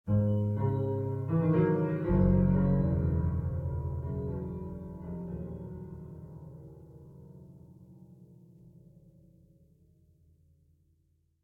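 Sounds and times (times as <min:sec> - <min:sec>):
musical stinger: 0:00.1 - 0:07.3.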